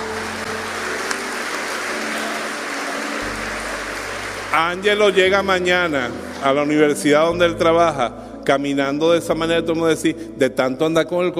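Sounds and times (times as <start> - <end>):
audience applause: 0.0 - 6.9
speech: 4.5 - 11.3.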